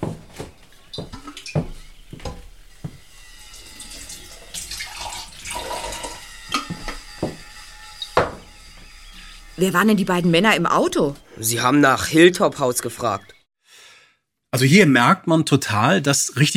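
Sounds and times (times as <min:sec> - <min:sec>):
water glass being filled in kitchen: 0:03.5 - 0:06.2
speech: 0:09.6 - 0:13.3, 0:14.5 - 0:16.5.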